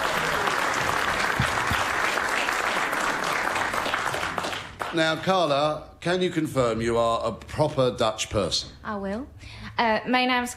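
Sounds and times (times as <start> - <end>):
audience applause: 0.0 - 5.4
speech: 4.9 - 10.5.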